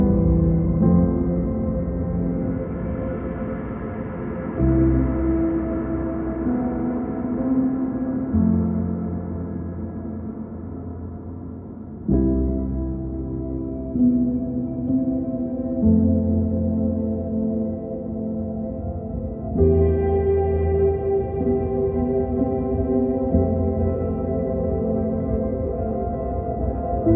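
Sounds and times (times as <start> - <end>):
background music bed: 0.0 - 27.1.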